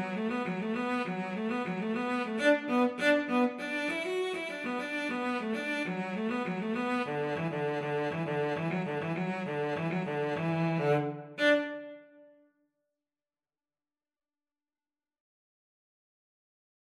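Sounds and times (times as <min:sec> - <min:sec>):
cello duet: 0:00.0 - 0:12.1.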